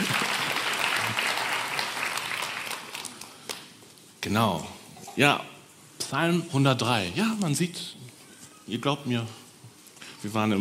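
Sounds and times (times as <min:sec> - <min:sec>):
applause: 0:00.0 - 0:03.8
speech: 0:04.2 - 0:05.5, 0:06.1 - 0:08.0, 0:08.7 - 0:09.4, 0:10.2 - 0:10.5.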